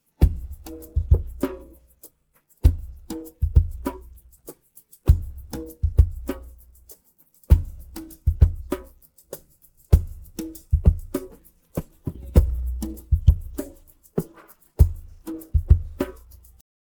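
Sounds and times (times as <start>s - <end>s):
drum pattern: 0.2s - 1.8s, 2.6s - 4.2s, 5.1s - 6.6s, 7.5s - 9.0s, 9.9s - 16.6s.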